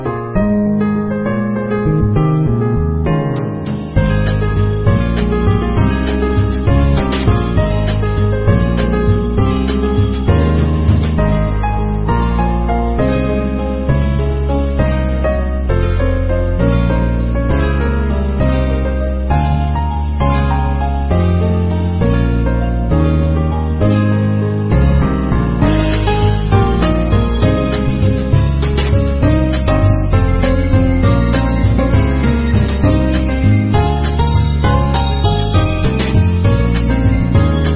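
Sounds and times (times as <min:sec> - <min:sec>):
game theme song: 0:00.3 - 0:37.7.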